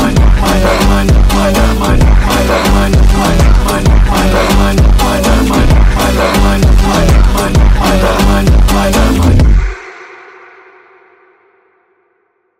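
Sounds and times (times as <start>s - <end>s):
workout rhythm song: 0.0s - 9.9s.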